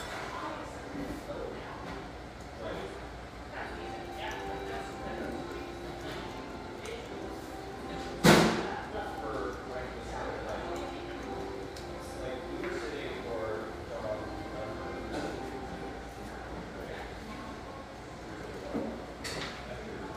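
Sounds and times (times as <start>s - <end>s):
murmur of talk in a Hazelwood coffeehouse: 0.0s - 20.1s
soft music: 3.4s - 17.4s.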